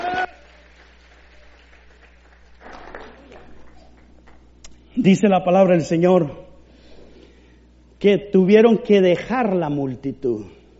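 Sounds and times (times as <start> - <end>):
audience applause: 0.0 - 4.4
speech: 5.0 - 6.4, 8.0 - 10.7.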